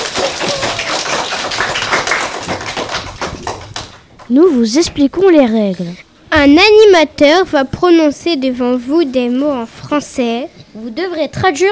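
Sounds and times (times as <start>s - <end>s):
audience applause: 0.0s - 4.1s
speech: 4.3s - 11.7s.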